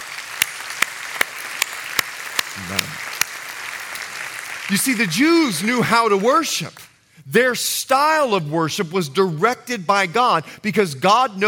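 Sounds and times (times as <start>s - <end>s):
scattered hand claps: 0.0s - 4.7s
crowd clapping in unison: 0.0s - 6.3s
speech: 2.6s - 3.1s, 4.7s - 11.4s.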